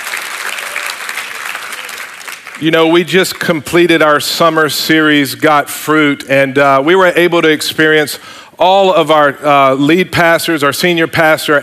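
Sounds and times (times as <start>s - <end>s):
Northwood Church congregation applauding to welcome guests: 0.0s - 3.8s
speech: 2.6s - 11.6s.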